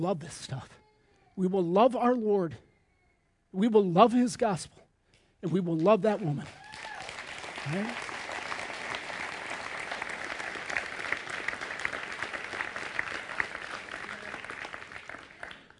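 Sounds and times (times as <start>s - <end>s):
speech: 0.0s - 0.8s, 1.4s - 2.7s, 3.5s - 4.8s, 5.4s - 6.6s, 7.6s - 8.1s
audience applause: 6.4s - 15.7s.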